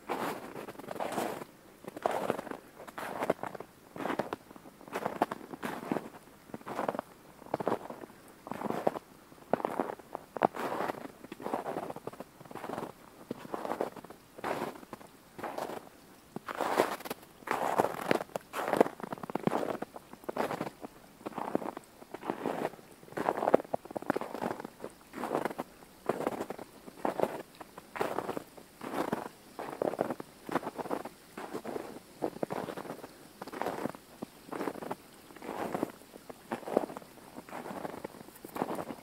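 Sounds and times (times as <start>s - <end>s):
faint constant hiss: 0.0s - 39.0s
boots crunching through snow: 2.0s - 4.3s, 4.9s - 6.1s, 12.6s - 15.8s, 16.5s - 20.7s, 21.3s - 27.4s, 28.0s - 39.0s.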